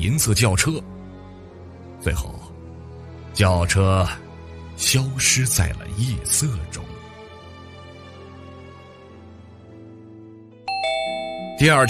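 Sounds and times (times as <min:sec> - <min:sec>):
speech: 0:00.0 - 0:01.0, 0:02.0 - 0:02.5, 0:03.4 - 0:04.2, 0:04.8 - 0:06.9, 0:11.6 - 0:11.8
doorbell ringing urgently: 0:10.7 - 0:11.8.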